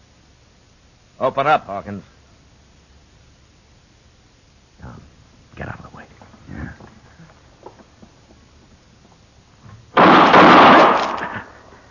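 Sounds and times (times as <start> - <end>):
speech: 1.2 - 2.1
gunshot: 10.0 - 11.6.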